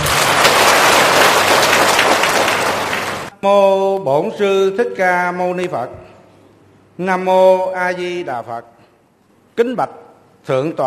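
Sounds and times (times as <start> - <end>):
audience applause: 0.0 - 3.3
speech: 3.4 - 6.1, 7.0 - 8.7, 9.6 - 10.8.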